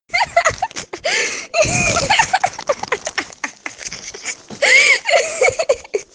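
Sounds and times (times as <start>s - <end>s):
person laughing: 0.1s - 6.1s.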